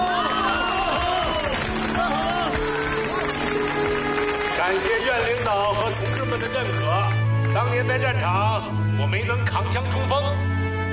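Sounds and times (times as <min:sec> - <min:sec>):
crowd voices and cheers: 0:00.0 - 0:05.9
audience clapping: 0:00.0 - 0:07.8
speech: 0:06.4 - 0:10.9.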